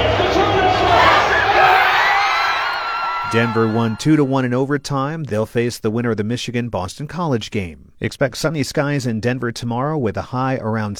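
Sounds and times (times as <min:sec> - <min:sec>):
hockey fans cheering a Denver Pioneers goal inside Magnus Arena: 0:00.0 - 0:04.4
speech: 0:03.3 - 0:10.9.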